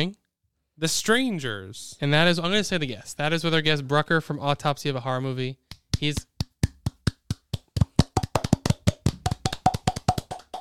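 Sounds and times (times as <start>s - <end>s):
speech: 0.0s - 0.2s, 0.8s - 6.3s
forceful hand clapping: 5.7s - 10.5s.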